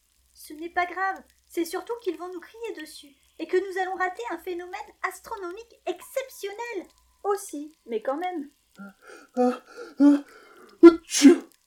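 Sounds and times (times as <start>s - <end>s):
speech: 0.5s - 11.6s
muffled sneeze: 8.8s - 10.2s, 10.8s - 11.5s.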